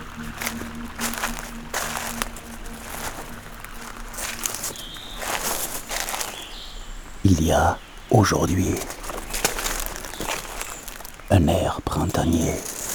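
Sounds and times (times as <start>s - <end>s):
low constant hum: 0.0s - 11.2s
brief high bird chirp: 0.0s - 12.9s
slow footsteps walking on dead leaves: 0.0s - 12.9s
speech: 7.4s - 9.0s, 11.3s - 12.8s.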